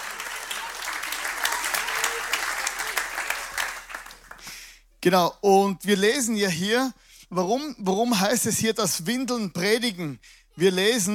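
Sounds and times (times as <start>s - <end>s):
audience applause: 0.0s - 4.5s
speech: 5.0s - 11.1s.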